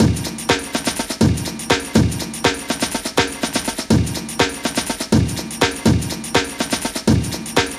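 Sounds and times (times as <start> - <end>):
chopped electronica drums and percussion loop: 0.0 - 7.7.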